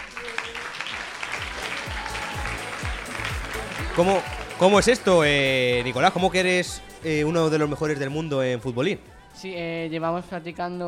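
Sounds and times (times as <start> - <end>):
crowd applause: 0.0 - 6.0
speech: 4.0 - 10.8.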